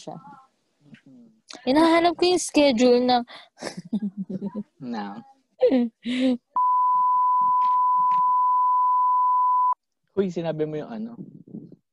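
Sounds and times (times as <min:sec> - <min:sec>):
speech: 0:00.0 - 0:00.5, 0:01.1 - 0:06.5, 0:10.2 - 0:11.4
censor bleep: 0:06.6 - 0:09.8.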